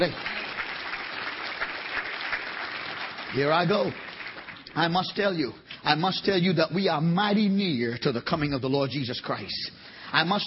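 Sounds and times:
speech: 0.0s - 0.3s, 3.3s - 4.1s, 4.7s - 10.4s
audience hand clapping: 0.0s - 5.3s.

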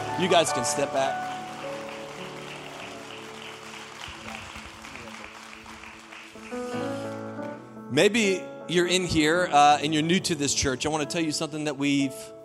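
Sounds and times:
crowd applauding: 0.0s - 7.7s
speech: 0.2s - 1.3s, 7.9s - 12.4s.

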